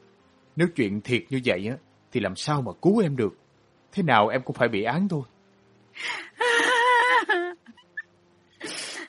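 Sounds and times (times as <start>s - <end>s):
speech: 0.6s - 5.3s, 6.0s - 6.3s
women crying and wailing: 6.0s - 8.0s.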